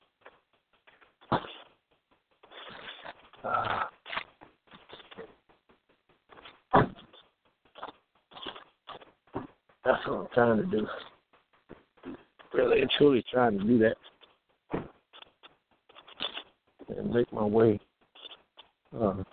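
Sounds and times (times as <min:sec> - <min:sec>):
person shuffling around while getting out of car: 0:00.0 - 0:19.3
speech: 0:09.9 - 0:11.1, 0:12.6 - 0:14.1, 0:17.1 - 0:17.9, 0:18.9 - 0:19.3.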